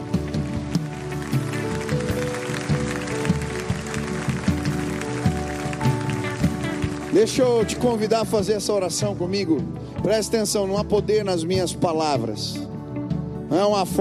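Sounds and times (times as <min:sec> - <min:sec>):
audience applauding: 0:00.0 - 0:08.5
sustained keyboard chords: 0:00.0 - 0:13.9
speech: 0:07.2 - 0:12.6, 0:13.5 - 0:13.9.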